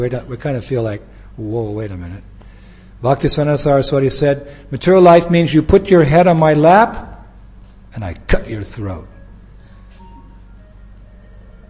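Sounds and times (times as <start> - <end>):
speech: 0.0 - 2.3, 3.0 - 7.1, 7.9 - 9.2
steady low hum: 0.0 - 11.6
mobile phone ringtone electronic melody: 9.1 - 11.6.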